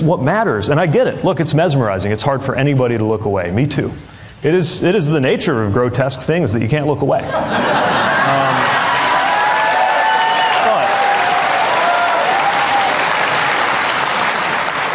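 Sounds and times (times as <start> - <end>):
speech: 0.0 - 8.2
laughter: 7.2 - 9.4
large crowd applause: 7.8 - 14.9
faint cheers and whoops: 8.2 - 13.3.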